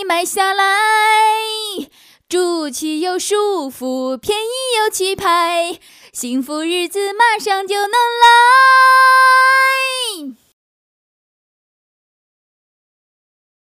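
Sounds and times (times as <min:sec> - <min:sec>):
girl singing a cover song: 0:00.0 - 0:10.5.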